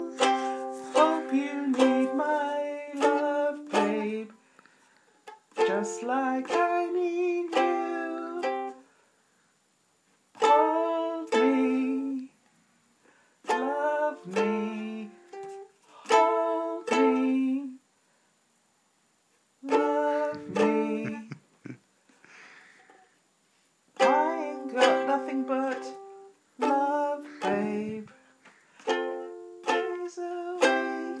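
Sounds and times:
ukulele: 0:00.0 - 0:04.4, 0:05.2 - 0:08.8, 0:10.4 - 0:12.3, 0:13.4 - 0:17.8, 0:19.7 - 0:21.4, 0:24.0 - 0:28.2, 0:28.8 - 0:31.1.

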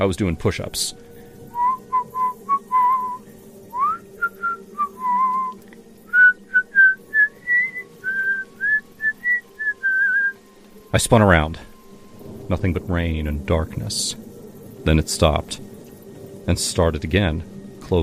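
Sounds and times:
speech: 0:00.0 - 0:01.1, 0:11.0 - 0:11.7, 0:12.5 - 0:15.7, 0:16.5 - 0:18.0
whistling: 0:01.5 - 0:10.4.

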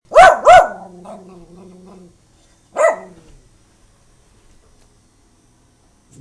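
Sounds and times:
barking: 0:00.1 - 0:01.4, 0:02.7 - 0:03.3.

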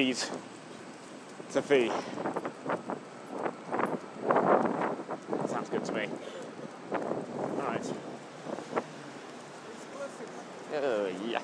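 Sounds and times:
speech: 0:00.0 - 0:00.6, 0:01.5 - 0:02.9
wind buffeting an outdoor microphone in rumbling gusts: 0:01.4 - 0:09.4.

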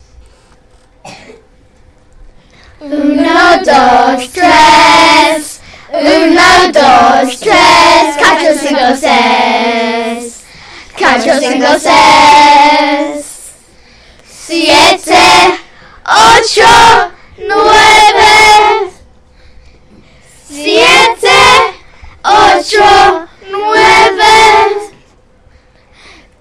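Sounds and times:
counting song in Spanish: 0:02.8 - 0:13.6, 0:14.4 - 0:19.0, 0:20.5 - 0:25.0.

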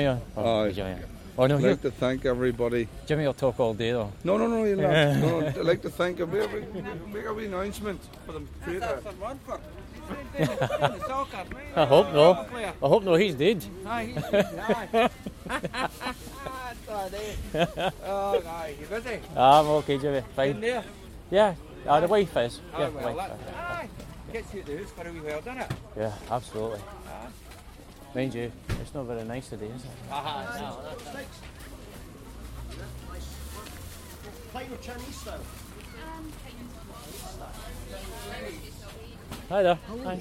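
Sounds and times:
market place soundscape: 0:00.0 - 0:40.1
laughter: 0:04.9 - 0:07.2, 0:10.0 - 0:12.4, 0:14.0 - 0:18.6.

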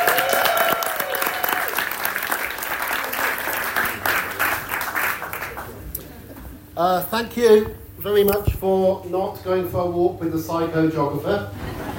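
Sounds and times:
audience applause: 0:00.0 - 0:05.8
speech: 0:06.8 - 0:11.6
laughter: 0:11.5 - 0:11.9.

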